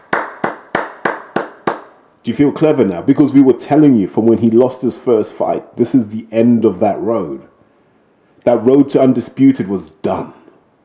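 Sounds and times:
round of applause: 0:00.0 - 0:01.9
speech: 0:02.3 - 0:07.5, 0:08.4 - 0:10.4.

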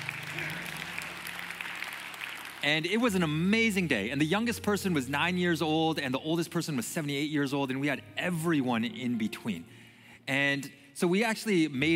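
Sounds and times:
audience applause: 0:00.0 - 0:02.9
speech: 0:02.6 - 0:11.9.

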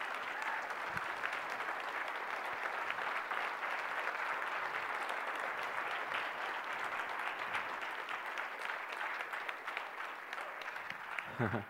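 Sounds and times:
audience applause: 0:00.0 - 0:11.6.

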